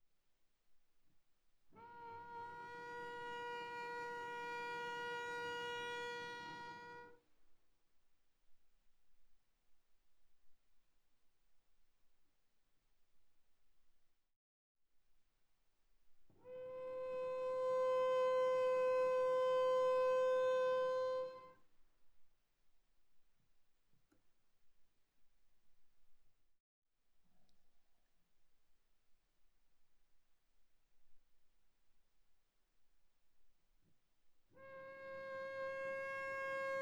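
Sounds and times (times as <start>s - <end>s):
viola arco on the D string: 1.7s - 7.3s, 16.3s - 21.7s, 34.5s - 36.8s.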